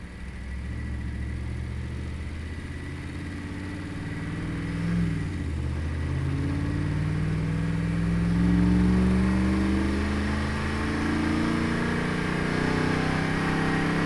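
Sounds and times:
Dodge Ram engine starting and driving at steady rpms, onboard: 0.0 - 14.0.

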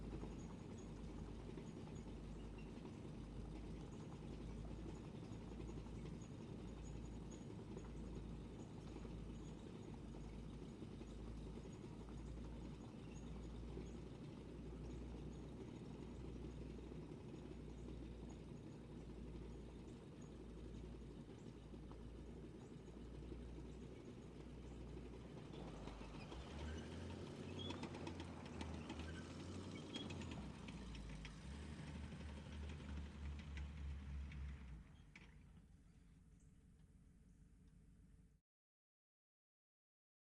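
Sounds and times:
Stuart M5A1 tank engine heard from outside: 0.0 - 38.2
Stuart M5A1 tank slowly moving off: 25.0 - 35.4.

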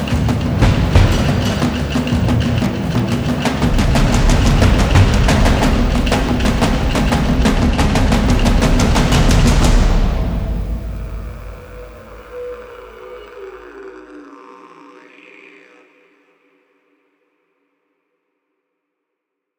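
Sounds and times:
jungle combat: 0.0 - 12.9.

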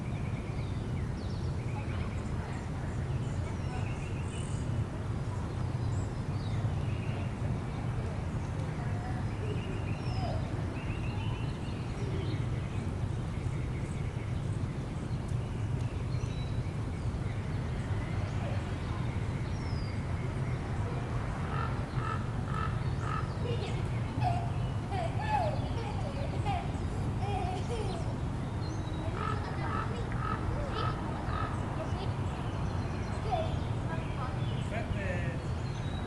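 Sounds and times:
birds in a residential park: 0.0 - 36.0
wind in a residential park: 0.0 - 36.0
children playing in a residential park: 23.0 - 28.3, 28.9 - 34.5.

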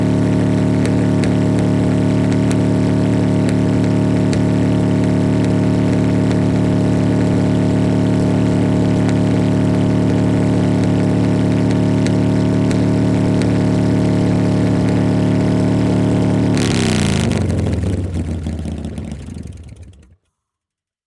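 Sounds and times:
Fatboy motorcycle with straight pipes throttling high: 0.0 - 20.2.

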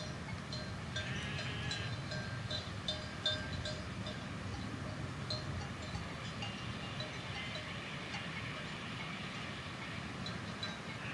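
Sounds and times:
several bells clinking: 0.0 - 11.1
sheep bleating: 1.0 - 2.0, 11.0 - 11.1.

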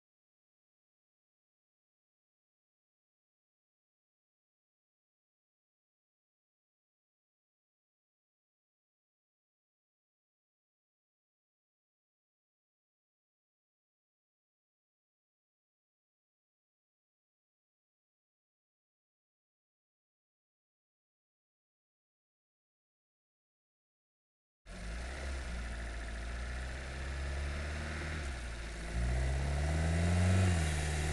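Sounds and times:
VW Golf engine during fast drive recorded onboard: 24.7 - 31.1.

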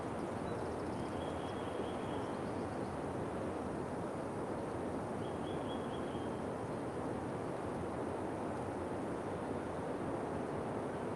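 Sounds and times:
birds in a forest: 0.0 - 3.2, 4.5 - 6.6
wind in a forest: 0.0 - 11.1.

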